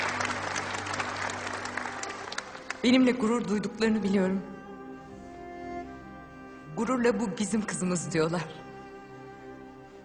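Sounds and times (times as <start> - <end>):
crowd applauding: 0.0 - 3.2
speech: 2.8 - 4.6, 6.8 - 8.6.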